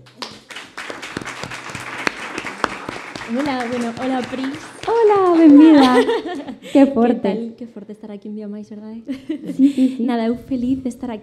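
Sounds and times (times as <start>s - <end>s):
audience applause: 0.0s - 6.6s
laughter: 2.2s - 7.2s, 9.1s - 10.2s
speech: 3.3s - 11.2s.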